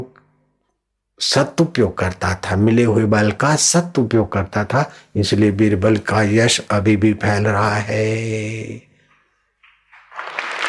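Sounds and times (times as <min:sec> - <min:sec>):
speech: 0:01.2 - 0:08.9
audience clapping: 0:09.6 - 0:10.6.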